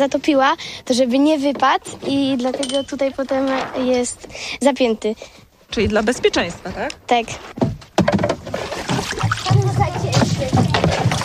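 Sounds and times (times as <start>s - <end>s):
speech: 0.0s - 8.2s
water sloshing while bailing a sailboat: 1.8s - 4.4s, 5.8s - 11.2s.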